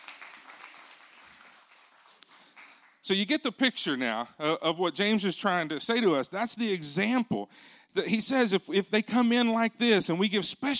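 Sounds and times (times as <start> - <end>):
audience clapping: 0.0 - 3.2
speech: 3.1 - 10.7.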